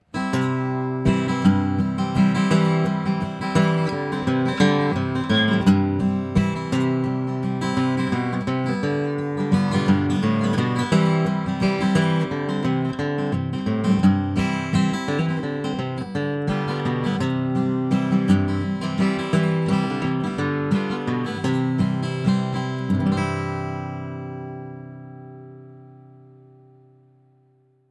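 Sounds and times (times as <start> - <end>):
guitar: 0.0 - 27.8.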